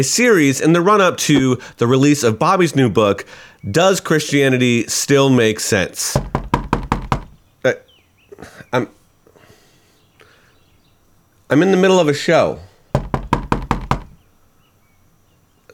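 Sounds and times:
speech: 0.0s - 6.4s, 7.6s - 7.8s, 8.4s - 9.0s, 11.5s - 12.7s
knocking at a door: 6.2s - 7.4s, 13.0s - 14.2s.

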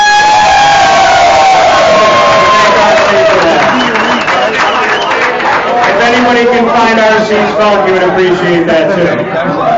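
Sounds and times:
bar crowd applauding: 0.0s - 7.1s
speech: 7.5s - 9.6s.

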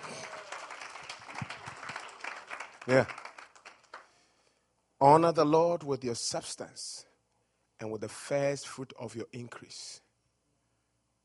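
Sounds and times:
congregation clapping during a church sermon: 0.0s - 4.2s
speech: 2.9s - 3.2s, 5.0s - 7.1s, 7.8s - 10.0s.

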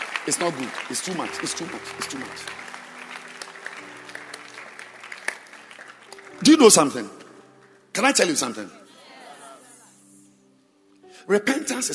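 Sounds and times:
crowd applauding: 0.0s - 7.2s
speech: 0.2s - 2.7s, 6.4s - 7.2s, 8.0s - 8.8s, 11.3s - 11.9s.

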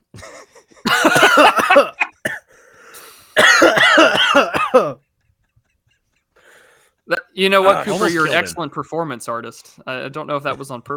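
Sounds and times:
person coughing after inhaling a raspberry bubbly drink: 0.9s - 2.5s, 3.4s - 5.0s
speech: 7.4s - 10.9s.

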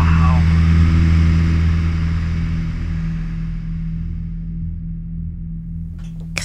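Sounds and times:
propeller-engine drone from an old airplane taking off: 0.0s - 4.8s.

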